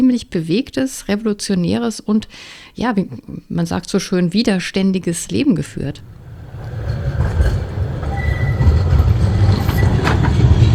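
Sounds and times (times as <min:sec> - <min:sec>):
speech: 0:00.0 - 0:06.2
tram passing at a tram stop: 0:05.3 - 0:10.7.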